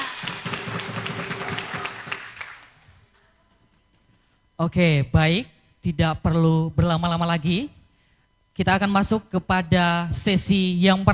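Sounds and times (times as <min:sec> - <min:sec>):
audience applause at a school quiz competition: 0:00.0 - 0:03.2
speech: 0:04.6 - 0:07.8, 0:08.6 - 0:11.1.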